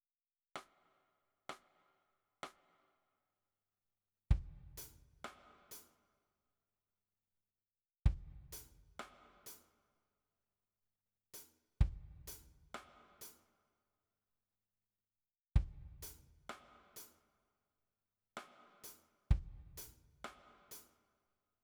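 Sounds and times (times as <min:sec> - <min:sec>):
drums: 0:04.3 - 0:06.0, 0:08.1 - 0:09.7, 0:11.4 - 0:13.5, 0:15.6 - 0:17.2, 0:18.4 - 0:21.0.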